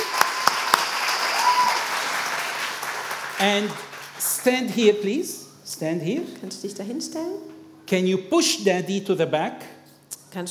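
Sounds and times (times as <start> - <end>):
audience applause: 0.0 - 4.5
speech: 3.4 - 10.5.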